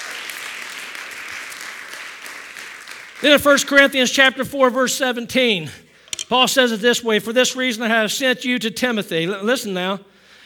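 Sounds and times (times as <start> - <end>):
audience clapping hands in praise: 0.0 - 3.9
speech: 3.2 - 10.2.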